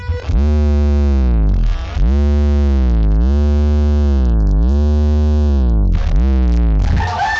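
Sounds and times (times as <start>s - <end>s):
suction-driven feedback from vibrating device on microphone: 0.0s - 7.2s.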